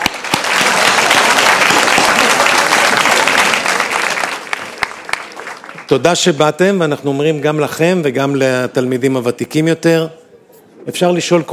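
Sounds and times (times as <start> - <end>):
audience applause: 0.0 - 6.1
speech: 5.9 - 10.2, 10.8 - 11.5.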